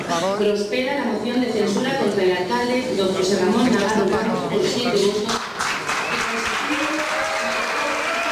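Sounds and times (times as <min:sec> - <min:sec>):
speech: 0:00.2 - 0:05.5
applause at a town council plenary in Griñón, Spain: 0:04.9 - 0:08.3
boos at a town council meeting: 0:06.7 - 0:08.3.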